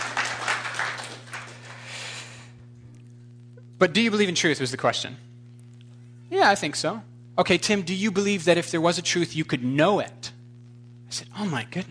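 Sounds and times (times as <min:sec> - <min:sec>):
audience clapping: 0:00.0 - 0:02.1
speech: 0:03.8 - 0:05.3, 0:06.4 - 0:10.2, 0:11.1 - 0:11.8.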